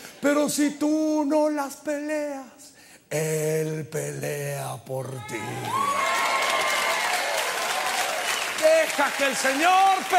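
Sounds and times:
speech: 0.2s - 6.2s, 8.6s - 10.1s
audience applause: 5.6s - 10.1s.

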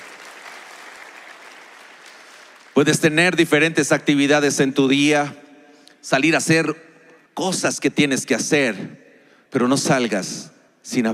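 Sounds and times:
audience applauding: 0.0s - 3.0s
speech: 2.8s - 5.4s, 6.0s - 11.1s.

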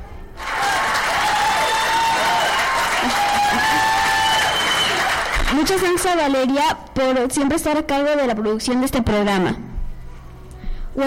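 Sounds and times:
applause: 0.4s - 6.1s
speech: 5.6s - 9.7s.

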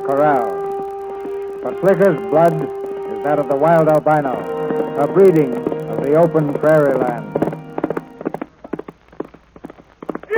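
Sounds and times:
speech: 0.1s - 0.6s, 1.6s - 7.3s
horse hooves clip-clopping: 4.3s - 10.3s.

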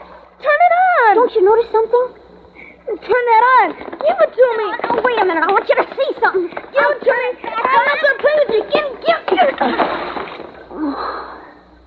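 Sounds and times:
speech: 1.2s - 2.2s, 2.9s - 11.3s
object dropping into water with a splash: 9.5s - 10.6s.

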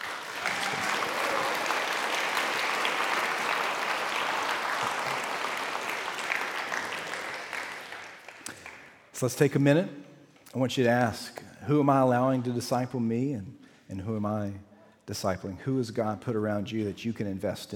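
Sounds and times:
audience applause: 0.0s - 9.0s
speech: 9.2s - 17.7s.

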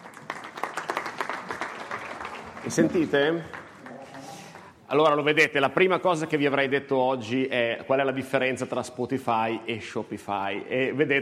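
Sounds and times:
audience applause: 0.0s - 4.8s
speech: 2.6s - 3.6s, 4.9s - 11.2s.

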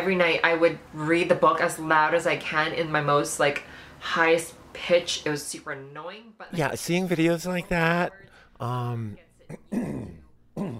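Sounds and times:
speech: 0.0s - 10.7s
person clearing throat: 9.5s - 10.7s.

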